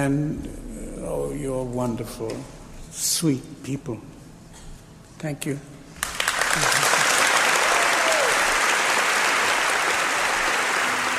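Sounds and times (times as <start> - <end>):
speech: 0.0 - 4.2, 5.2 - 5.8, 6.6 - 6.8
audience applause: 6.0 - 11.1.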